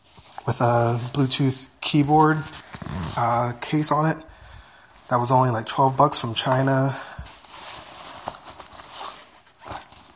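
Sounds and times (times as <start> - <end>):
rummaging through a carry bag: 0.0 - 10.1
speech: 0.5 - 4.3, 5.1 - 7.2.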